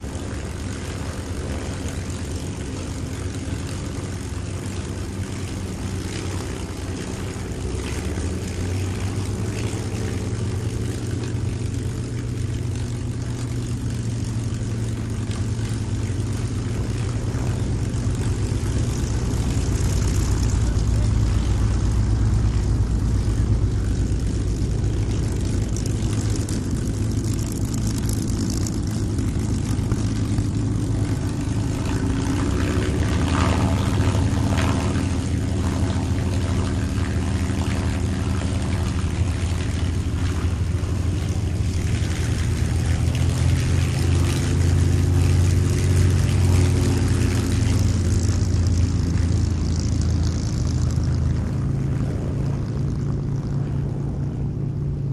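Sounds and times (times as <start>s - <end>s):
multiple airplanes on an airfield: 0.0s - 55.1s.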